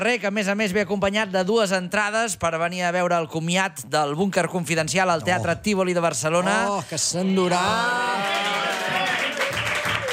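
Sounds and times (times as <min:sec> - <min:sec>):
speech: 0:00.0 - 0:08.6
audience applause: 0:07.6 - 0:10.1.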